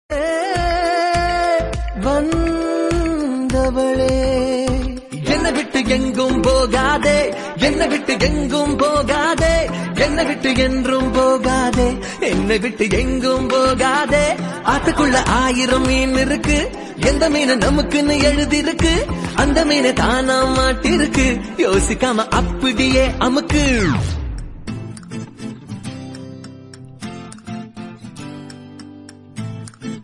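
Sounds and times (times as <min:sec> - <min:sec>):
Tamil ringtone: 0:00.5 - 0:29.4.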